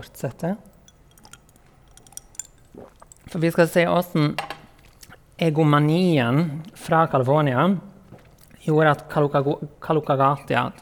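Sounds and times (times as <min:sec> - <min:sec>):
speech: 0:00.0 - 0:00.7, 0:03.3 - 0:04.5, 0:05.4 - 0:07.9, 0:08.6 - 0:10.7
glass clinks: 0:00.8 - 0:02.7
person sipping water: 0:01.2 - 0:03.4, 0:04.8 - 0:05.3
soft gulp: 0:02.6 - 0:03.4.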